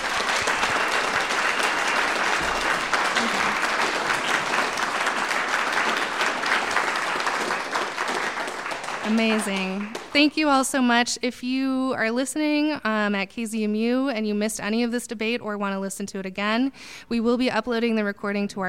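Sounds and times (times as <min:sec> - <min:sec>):
live audience applause: 0:00.0 - 0:10.3
speech: 0:09.1 - 0:18.6.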